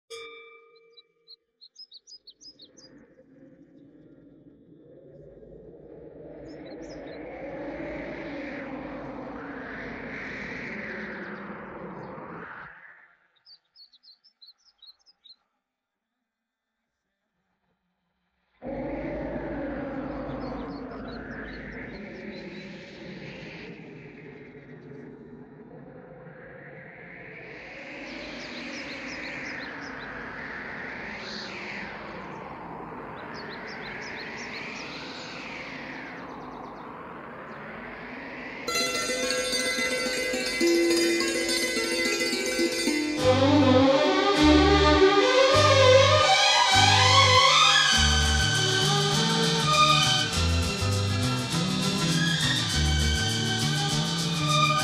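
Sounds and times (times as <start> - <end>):
backing track: 38.7 - 54.8.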